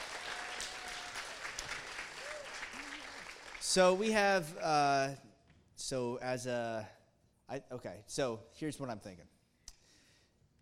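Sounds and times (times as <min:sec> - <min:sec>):
audience applause: 0:00.0 - 0:04.1
speech: 0:03.7 - 0:09.4.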